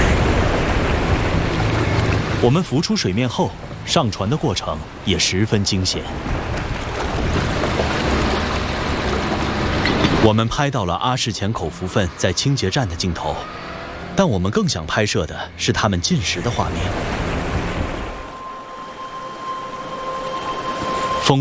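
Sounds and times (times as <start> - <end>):
strong wind at sea during a storm: 0.0 - 10.3, 16.4 - 21.3
heavy waves at sea during a storm: 0.0 - 21.3.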